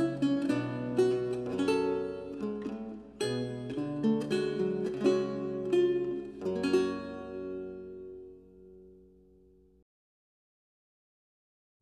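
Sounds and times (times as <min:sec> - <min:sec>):
recercar on renaissance lute: 0:00.0 - 0:09.2.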